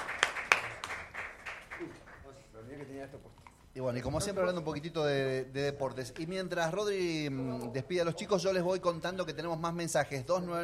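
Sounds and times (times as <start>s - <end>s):
applause for the teacher and students: 0.0s - 2.4s
speech: 2.6s - 10.6s.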